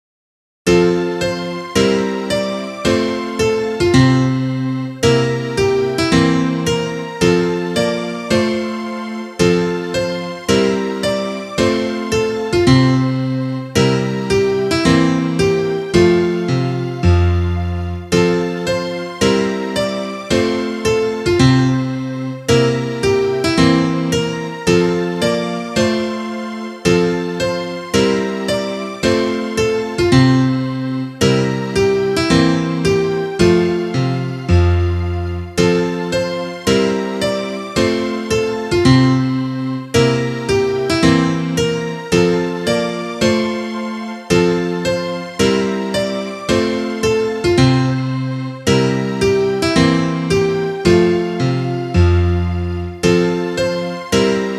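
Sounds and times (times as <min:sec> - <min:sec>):
instrumental music: 0:00.7 - 0:54.5.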